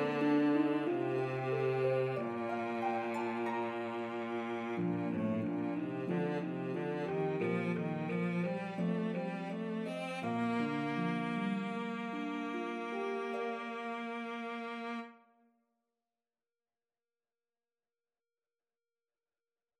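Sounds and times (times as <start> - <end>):
harp melody: 0.0 - 14.5
cello: 0.0 - 15.2.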